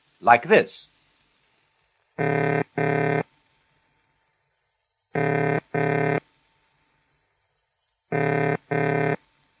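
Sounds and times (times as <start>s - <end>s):
telephone ringing tone of paired low-pitched burrs: 2.2s - 3.2s, 5.2s - 6.2s, 8.1s - 9.2s.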